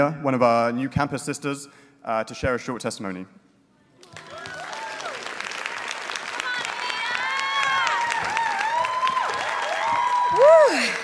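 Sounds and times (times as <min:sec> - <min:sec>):
speech: 0:00.0 - 0:03.4, 0:10.4 - 0:11.0
audience applause: 0:04.0 - 0:11.0.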